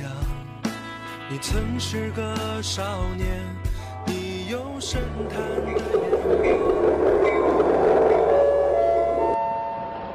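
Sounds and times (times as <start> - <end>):
speech: 1.3 - 3.8, 4.5 - 7.7
train sound effect rolling rumble: 4.2 - 10.1.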